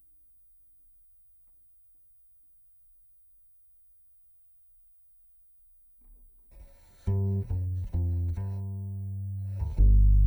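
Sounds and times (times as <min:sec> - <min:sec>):
direct-input contrabass: 0:06.6 - 0:10.2.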